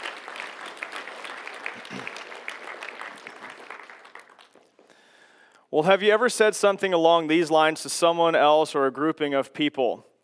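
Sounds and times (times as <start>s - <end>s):
audience applause: 0.0s - 4.8s
speech: 5.7s - 10.1s.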